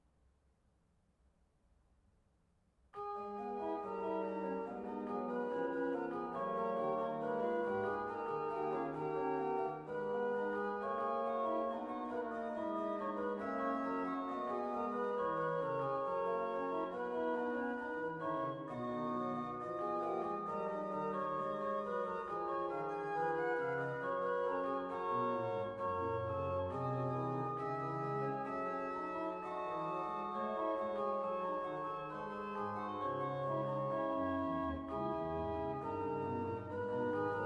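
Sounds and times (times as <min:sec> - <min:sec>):
organ piece: 0:03.0 - 0:37.4.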